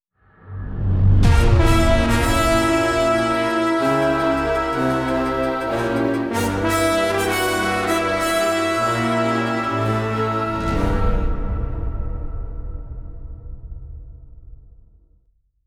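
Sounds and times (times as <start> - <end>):
war horns: 1.2 - 12.4.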